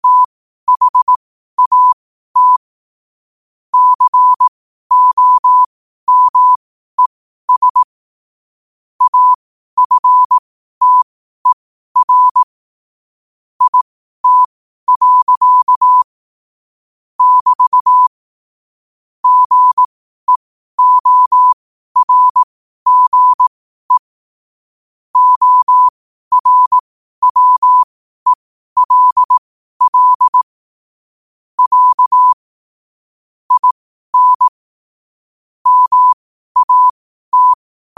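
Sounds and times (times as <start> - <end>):
morse code at 5 wpm: 0.0 - 2.6, 3.8 - 6.6, 7.5 - 7.9, 9.0 - 12.5, 13.6 - 16.1, 17.2 - 18.1, 19.2 - 24.1, 25.2 - 30.5, 31.6 - 32.4, 33.5 - 34.6, 35.6 - 37.9.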